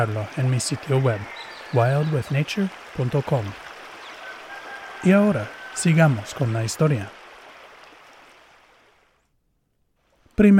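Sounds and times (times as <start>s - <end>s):
speech: 0.0s - 3.6s, 5.0s - 7.2s, 10.4s - 10.5s
Huatulco River water flowing over stones: 0.0s - 9.2s.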